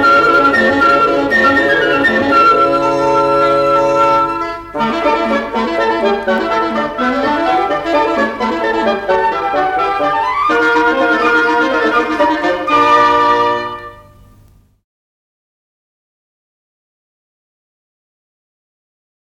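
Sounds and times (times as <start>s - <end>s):
woodwind quintet playing an Allegro vivo: 0.0s - 14.3s.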